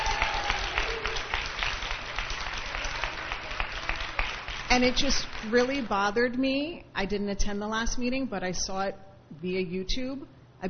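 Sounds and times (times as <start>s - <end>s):
audience applause: 0.0s - 5.9s
speech: 4.7s - 10.6s.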